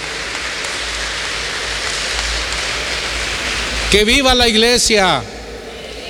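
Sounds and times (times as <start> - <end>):
audience applause: 0.0 - 4.2
speech: 3.9 - 5.4.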